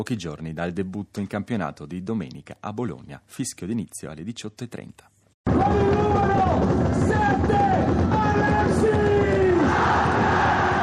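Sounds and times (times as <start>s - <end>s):
speech: 0.0s - 9.0s
Udinese football fans cheering in Piazza della Libertà: 5.5s - 10.8s.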